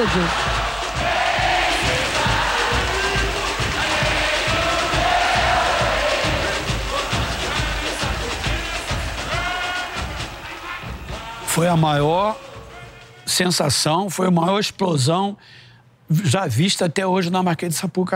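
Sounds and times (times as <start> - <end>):
speech: 0.0 - 0.5, 11.6 - 12.4, 13.3 - 18.1
carnival crowd singing samba: 0.0 - 11.6
carnival crowd cheering: 0.0 - 13.0.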